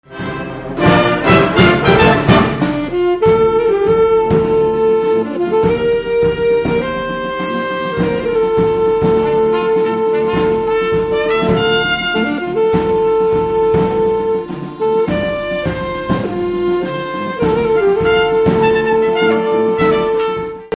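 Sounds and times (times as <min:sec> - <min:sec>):
saxophone: 0:00.0 - 0:20.7
trumpet: 0:00.0 - 0:20.7.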